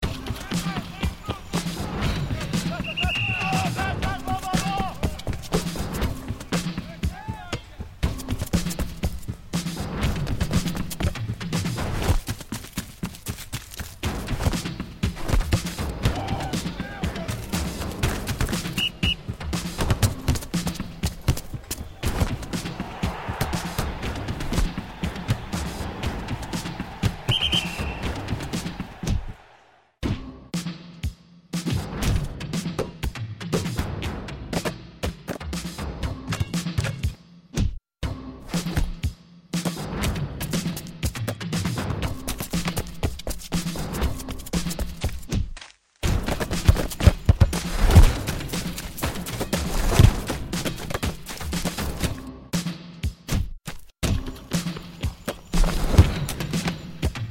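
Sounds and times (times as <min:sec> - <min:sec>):
music: 0:00.0 - 0:57.2
soccer pitch ambience: 0:00.2 - 0:29.6, 0:46.0 - 0:52.2, 0:54.1 - 0:57.2.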